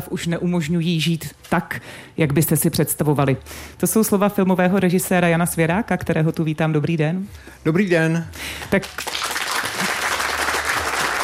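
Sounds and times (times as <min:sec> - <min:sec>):
speech: 0:00.0 - 0:09.3
festival audience applause: 0:08.8 - 0:11.2.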